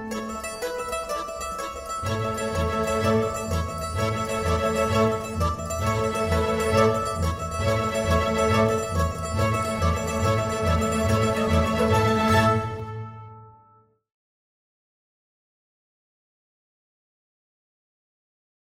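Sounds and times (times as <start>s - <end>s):
orchestra playing tarantella: 0.0s - 13.6s.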